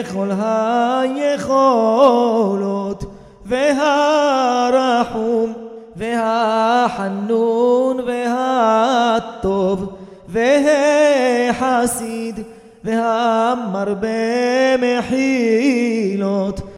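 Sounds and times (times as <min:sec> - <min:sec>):
Yom Kippur prayer in Morocco: 0:00.0 - 0:16.7.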